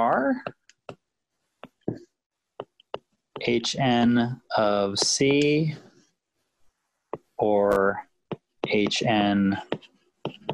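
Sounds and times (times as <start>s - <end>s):
speech: 0.0s - 0.6s, 3.4s - 5.9s, 7.4s - 8.1s, 8.7s - 9.8s
writing taps on a board during a maths lecture: 0.0s - 1.0s, 1.6s - 2.0s, 2.6s - 4.2s, 5.0s - 5.6s, 7.1s - 7.3s, 8.3s - 10.5s.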